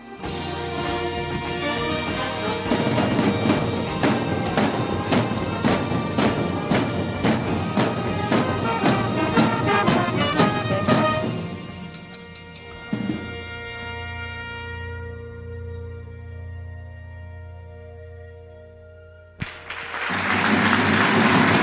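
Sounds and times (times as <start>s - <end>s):
sustained musical tones: 0.0s - 19.4s
audience applause: 0.8s - 11.5s, 19.4s - 21.6s.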